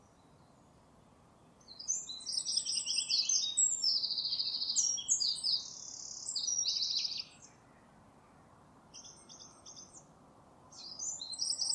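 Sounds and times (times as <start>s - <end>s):
bird chirping: 1.4s - 7.6s, 8.9s - 10.1s, 10.7s - 11.7s.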